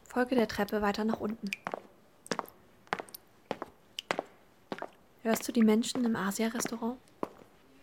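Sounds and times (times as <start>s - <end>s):
speech: 0.1s - 1.8s, 5.2s - 7.1s
water drops falling: 1.3s - 1.8s.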